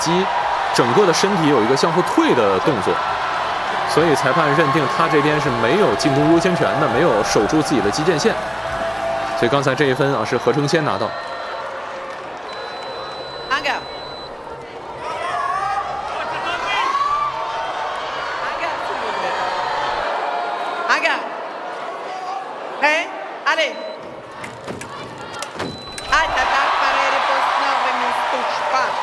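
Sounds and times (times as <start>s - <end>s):
speech: 0.0s - 3.3s, 3.9s - 8.8s, 9.4s - 11.3s
crowd cheering in fencing arena: 0.0s - 29.0s.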